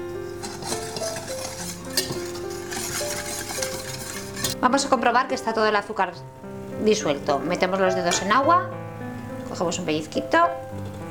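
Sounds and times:
utensil stirring egg whites and sugar in metal bowl in bain-marie: 0.0s - 4.6s
speech: 4.6s - 8.8s, 9.6s - 10.9s.

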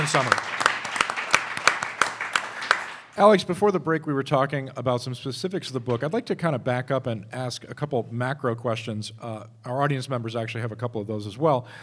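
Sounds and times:
sparse hand claps from a small live audience at a radio taping: 0.0s - 3.2s
speech: 0.1s - 0.5s, 3.2s - 11.8s.

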